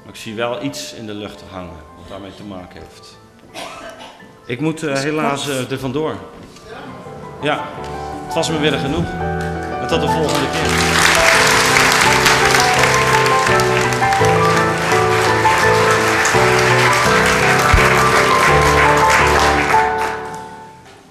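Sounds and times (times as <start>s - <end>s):
faint music: 0.0s - 21.0s
speech: 0.1s - 3.6s, 4.5s - 6.4s, 7.4s - 11.2s
large audience applause: 9.5s - 20.6s.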